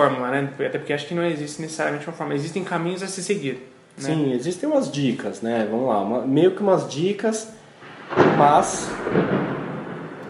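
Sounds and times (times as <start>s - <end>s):
speech: 0.0s - 9.5s
heavy rain in São Paulo: 7.8s - 10.2s.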